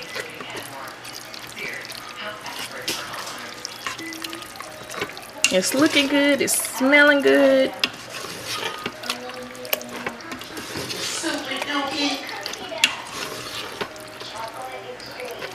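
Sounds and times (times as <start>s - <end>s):
food with barbecue sauce being stirred in a cooking pot: 0.0s - 15.5s
light sizzle: 0.0s - 15.5s
utensil clinking against pot: 2.9s - 14.5s
speech: 5.5s - 7.9s.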